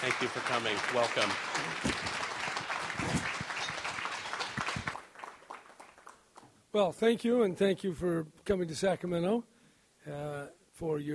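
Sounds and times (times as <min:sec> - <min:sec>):
speech: 0:00.0 - 0:02.2, 0:06.8 - 0:11.1
audience applause in Sacramento welcoming Governor Jerry Brown: 0:00.0 - 0:06.2.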